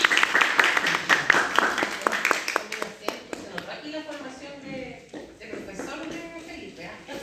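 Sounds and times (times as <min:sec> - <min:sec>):
scattered clapping from a small group after an oral litigation exercise: 0:00.0 - 0:03.7.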